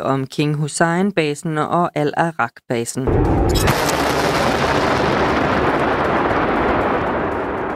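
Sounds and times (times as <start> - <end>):
speech: 0.0 - 5.2
missile launch roar: 3.1 - 7.7.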